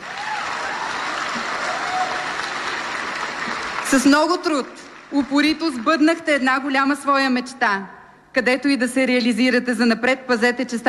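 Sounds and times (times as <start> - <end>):
2022 medical graduates of Medical University Sofia applauding at graduation ceremony: 0.0 - 6.1
speech: 3.9 - 10.8.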